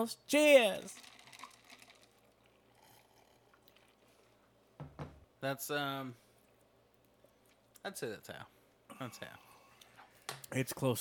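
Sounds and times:
speech: 0.0 - 1.1, 5.4 - 6.2, 7.8 - 9.5, 10.5 - 10.9
sipping a drink: 1.0 - 4.4.

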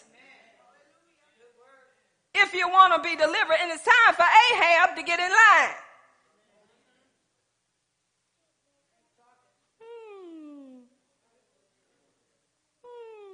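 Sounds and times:
speech: 2.5 - 5.8
voice imitating a dog whimpering: 9.8 - 10.9, 12.8 - 13.3.

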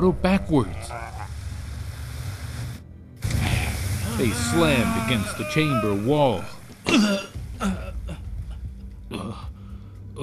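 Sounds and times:
speech: 0.0 - 1.1, 4.2 - 7.9, 9.1 - 9.5
surge of water bursting forth: 3.2 - 7.3.

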